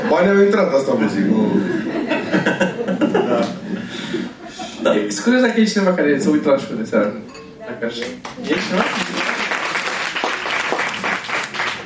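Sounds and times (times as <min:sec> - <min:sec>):
speech: 0:00.1 - 0:02.7, 0:04.9 - 0:09.1
laughter: 0:01.4 - 0:05.2
audience applause at a show: 0:08.2 - 0:11.8.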